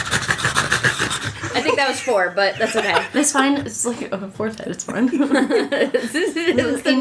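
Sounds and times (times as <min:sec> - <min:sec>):
people imitating a three-headed pug's panting noise: 0:00.0 - 0:04.2
laughter: 0:01.4 - 0:03.9, 0:05.0 - 0:06.9
speech: 0:01.8 - 0:06.9.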